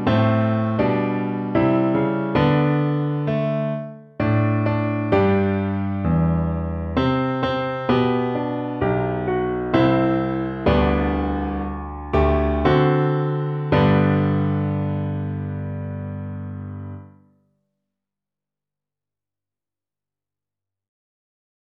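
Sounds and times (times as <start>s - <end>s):
musical accompaniment in G: 0.0s - 17.1s.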